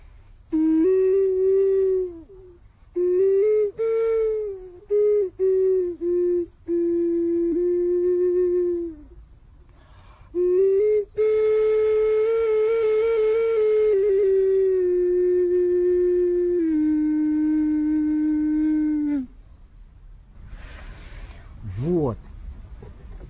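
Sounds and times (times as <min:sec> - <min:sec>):
ceramic cat-shaped ocarina melody: 0:00.5 - 0:09.3, 0:10.3 - 0:19.5.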